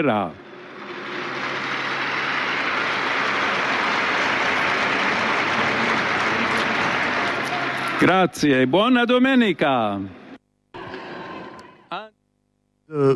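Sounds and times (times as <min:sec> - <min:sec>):
speech: 0:00.0 - 0:00.4, 0:08.0 - 0:10.2, 0:12.9 - 0:13.1
large crowd applause: 0:00.4 - 0:09.0.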